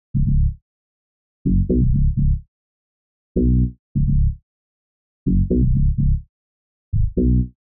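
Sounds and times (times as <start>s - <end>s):
bass: 0.0s - 0.6s, 1.5s - 2.5s, 3.4s - 4.4s, 5.3s - 6.3s, 6.9s - 7.6s.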